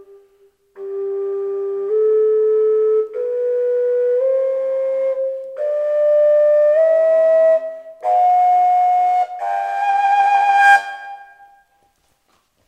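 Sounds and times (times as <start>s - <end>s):
fujara flute playing G: 0.0s - 12.0s.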